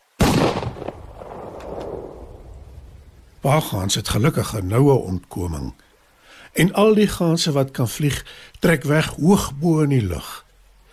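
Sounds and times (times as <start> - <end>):
hunter's gunshots: 0.2 - 2.1
speech: 3.4 - 5.9, 6.5 - 10.4.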